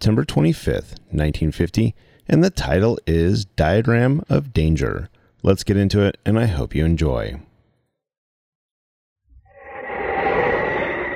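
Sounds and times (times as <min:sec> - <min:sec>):
speech: 0:00.0 - 0:07.5
howling wind: 0:09.5 - 0:11.1.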